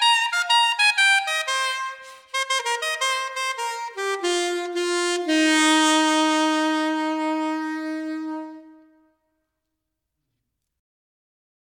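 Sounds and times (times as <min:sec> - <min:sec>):
sopranino saxophone solo: 0:00.0 - 0:09.2.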